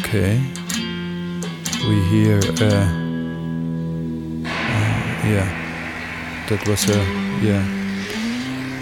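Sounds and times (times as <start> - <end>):
speech: 0.1 - 0.6, 1.8 - 3.0, 5.3 - 5.6, 6.5 - 7.8
deep low note on a guitar: 1.7 - 8.8
gliding low tones bending in pitch: 3.6 - 8.8.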